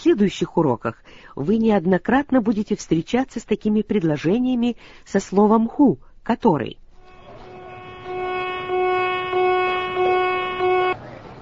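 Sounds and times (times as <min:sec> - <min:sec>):
speech: 0:00.1 - 0:06.8
ship's fire alarm horn blaring for a fire drill: 0:07.0 - 0:11.0.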